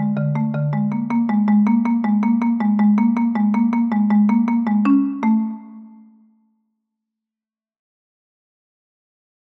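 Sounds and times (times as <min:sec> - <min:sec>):
Bulgarian rhythm: 0:00.0 - 0:05.9.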